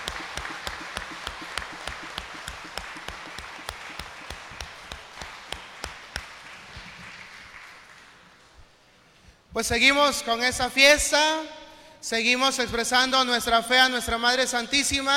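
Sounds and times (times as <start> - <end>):
crowd applause: 0.0 - 8.5
speech: 9.6 - 15.1.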